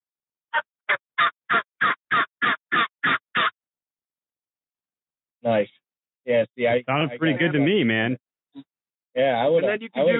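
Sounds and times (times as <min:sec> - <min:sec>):
hand or mouth call imitating a hen's simple cluck: 0:00.5 - 0:03.5
speech: 0:05.5 - 0:10.1
laughter: 0:06.4 - 0:08.2, 0:09.2 - 0:10.1.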